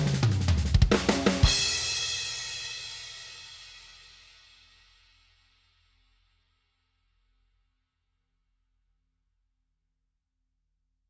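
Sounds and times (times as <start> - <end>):
drum sample: 0.0 - 2.3.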